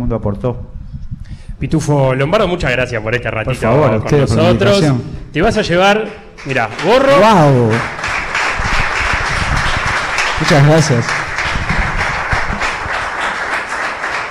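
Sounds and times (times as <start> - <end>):
speech: 0.1 - 8.0, 10.4 - 11.2
audience applause: 6.4 - 14.2.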